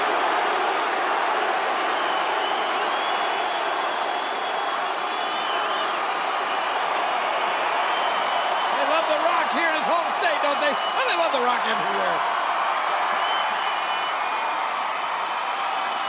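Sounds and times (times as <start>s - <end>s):
arena crowd cheering in Fort Lauderdale: 0.0s - 16.0s
faint high whistles: 1.8s - 6.0s, 13.1s - 14.3s
speech: 10.7s - 12.4s.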